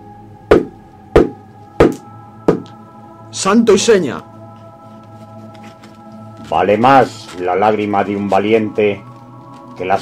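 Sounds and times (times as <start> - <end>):
firm knocks on a door at the end of a small vestibule: 0.5 - 2.7
speech: 3.3 - 4.3, 6.5 - 9.1, 9.8 - 10.0.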